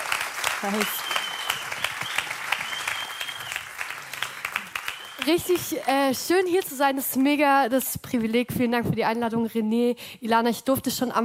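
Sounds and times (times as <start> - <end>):
audience applause: 0.0 - 6.4
speech: 0.6 - 1.2, 5.2 - 11.2
faint whistle-like tone: 0.9 - 3.6, 4.8 - 5.3.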